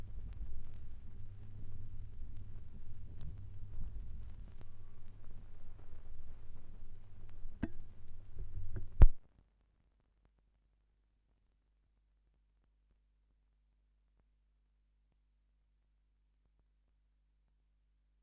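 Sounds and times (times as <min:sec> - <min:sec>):
gramophone record noise at 16 rpm: 0:00.0 - 0:09.2.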